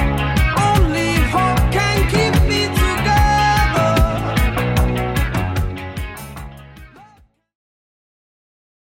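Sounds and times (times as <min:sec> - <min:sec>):
drum beat: 0:00.6 - 0:06.6.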